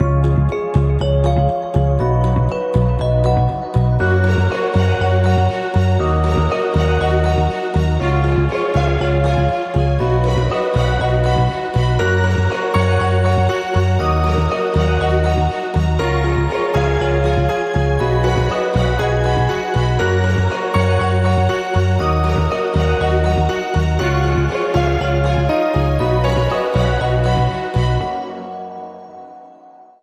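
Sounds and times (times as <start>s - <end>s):
joyful inspiring music: 0.0s - 29.9s.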